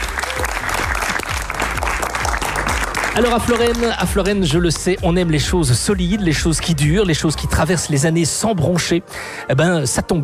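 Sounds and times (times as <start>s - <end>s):
audience applause in the Salle Saint-Pierre, Florennes: 0.0s - 4.4s
speech: 3.2s - 10.2s.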